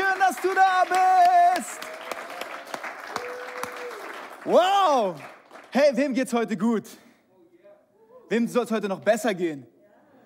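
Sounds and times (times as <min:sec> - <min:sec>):
audience applause: 0:00.0 - 0:05.8
speech: 0:04.5 - 0:07.0, 0:08.3 - 0:09.7.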